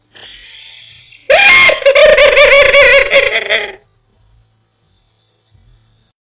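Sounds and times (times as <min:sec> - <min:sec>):
witch demon laugh: 0:00.6 - 0:03.8.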